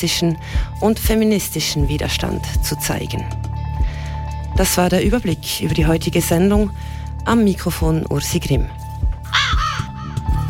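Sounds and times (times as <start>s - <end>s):
speech: 0.0s - 3.5s, 4.6s - 8.8s
raven cawing: 9.3s - 10.3s.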